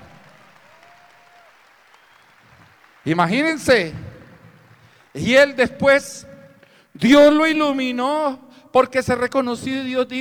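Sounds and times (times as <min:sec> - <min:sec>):
audience applause: 0:00.0 - 0:05.2
speech: 0:03.0 - 0:04.0, 0:05.2 - 0:06.3, 0:07.0 - 0:10.2.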